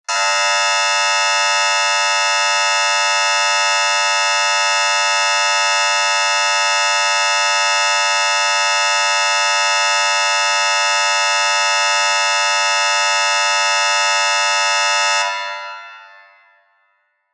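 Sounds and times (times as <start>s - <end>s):
theatre or hall start buzzer with reverb: 0.0s - 16.2s.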